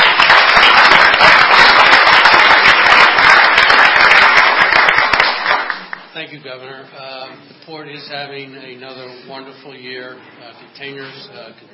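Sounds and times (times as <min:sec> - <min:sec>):
audience applause congratulating the port on another record year: 0:00.0 - 0:06.1
speech: 0:06.3 - 0:07.0, 0:07.7 - 0:11.7.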